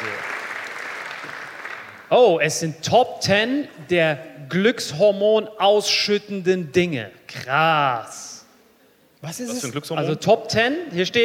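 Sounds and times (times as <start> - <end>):
audience applause: 0.0 - 2.1
speech: 2.1 - 8.4, 9.2 - 11.2.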